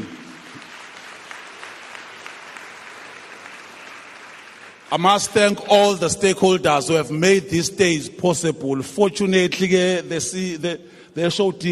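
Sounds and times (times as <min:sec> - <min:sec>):
audience applause: 0:00.0 - 0:06.1
speech: 0:04.9 - 0:11.6.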